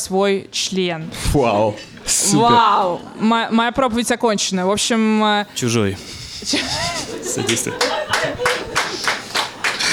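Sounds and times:
speech: 0.0 - 8.7
laughter: 5.7 - 9.9
sparse audience clapping: 7.5 - 9.9.

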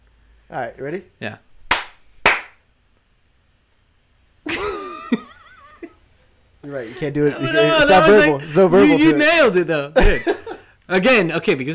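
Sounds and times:
speech: 0.5 - 1.5, 6.7 - 11.7
hand slaps: 1.7 - 2.6
laughter: 4.5 - 6.0, 6.6 - 9.4, 10.0 - 10.7.

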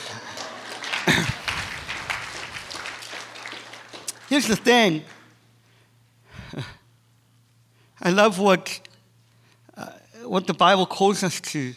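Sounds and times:
audience hand clapping: 0.0 - 5.4
speech: 4.3 - 5.2, 8.1 - 8.9, 9.8 - 11.7.

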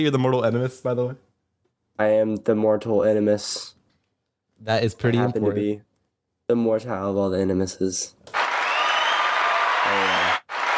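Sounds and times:
speech: 0.0 - 1.3, 2.0 - 3.8, 4.6 - 5.9, 6.5 - 8.4
applause: 8.3 - 10.7.

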